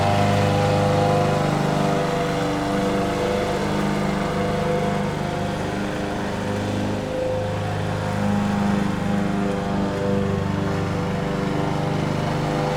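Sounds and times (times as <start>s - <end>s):
lawn mower: 0.0s - 12.7s.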